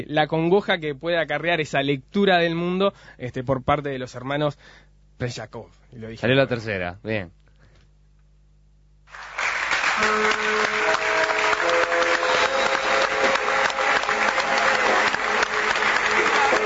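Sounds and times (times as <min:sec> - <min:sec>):
speech: 0:00.0 - 0:07.4
audience applause: 0:09.1 - 0:16.6.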